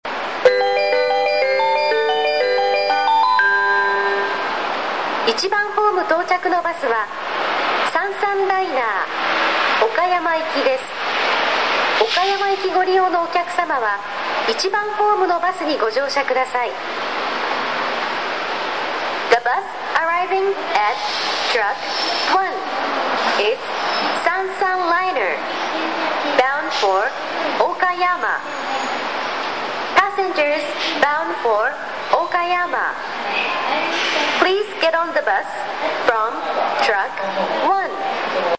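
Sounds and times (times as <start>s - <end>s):
bus center ambience: 0.0s - 38.5s.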